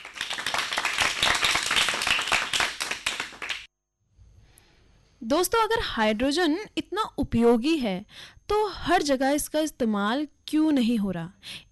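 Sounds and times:
audience applause: 0.0 - 3.7
speech: 5.3 - 11.6.

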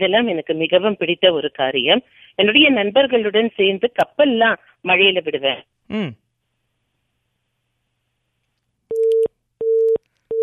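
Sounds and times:
speech: 0.0 - 6.2
phone busy tone after a call drops: 8.9 - 10.4.

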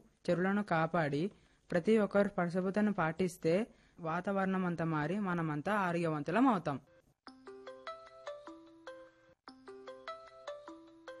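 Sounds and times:
speech: 0.2 - 6.9
phone ringtone for an incoming call: 7.3 - 11.1.

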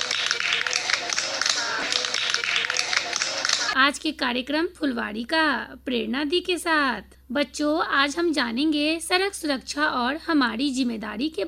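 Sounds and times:
children clapping in welcome: 0.0 - 3.8
speech: 3.8 - 11.4.

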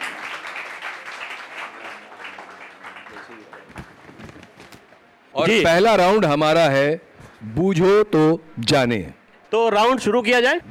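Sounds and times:
audience applause: 0.0 - 4.1
speech: 3.2 - 4.0, 5.4 - 10.7.

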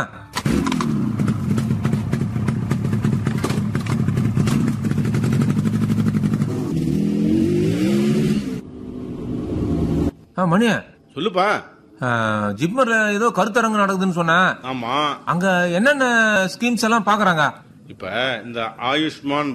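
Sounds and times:
speech: 0.0 - 0.6, 10.4 - 19.5
motorbike engine starting, revving and pulling away: 0.3 - 10.1.

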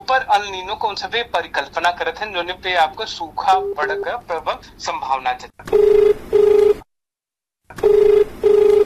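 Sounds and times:
speech: 0.3 - 6.2
telephone ringing for an incoming call: 5.7 - 6.8, 7.8 - 8.8.

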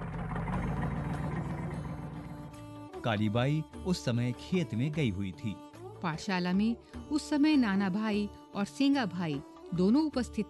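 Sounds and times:
truck engine idling after stopping: 0.0 - 3.1
speech: 3.0 - 10.4.

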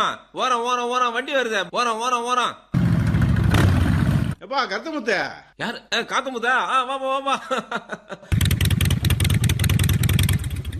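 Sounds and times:
speech: 0.0 - 2.7, 4.5 - 8.6
motorcycle engine revving: 2.8 - 4.4, 8.3 - 10.7.

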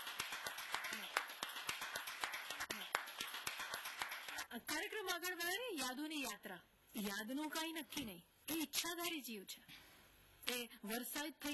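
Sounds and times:
hand clapping for a performer: 0.0 - 6.4, 10.4 - 11.5
speech: 4.5 - 9.8, 10.5 - 11.5.

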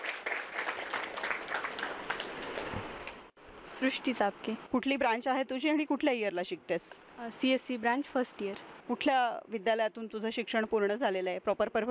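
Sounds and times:
audience applauding a student at a college event: 0.0 - 3.2
speech: 3.8 - 11.8.

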